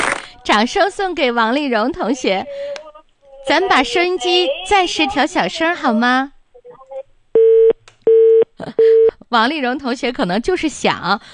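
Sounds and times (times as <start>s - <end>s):
speech: 0.5s - 2.8s, 3.4s - 6.4s, 8.6s - 11.3s
phone line disconnected tone beeps: 7.4s - 9.1s.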